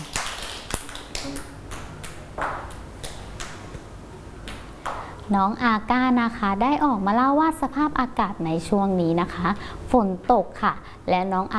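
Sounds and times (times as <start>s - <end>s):
children clapping hands: 0.0s - 3.6s
faint hum: 0.0s - 11.5s
speech: 5.3s - 11.5s.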